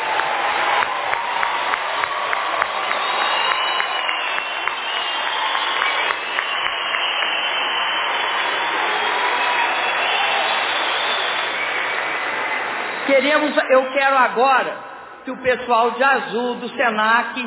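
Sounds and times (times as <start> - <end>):
audience applause for graduates: 0.0 - 13.2
speech: 13.2 - 17.4.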